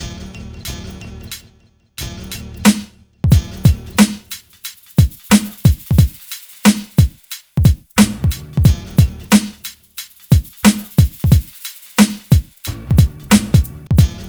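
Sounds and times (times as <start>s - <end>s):
hip hop and R&B mix: 2.2s - 14.2s.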